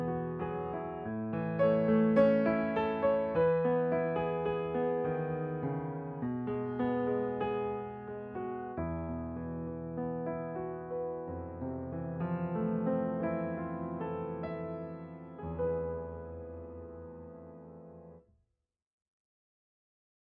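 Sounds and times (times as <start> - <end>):
solo piano: 0.0 - 18.2.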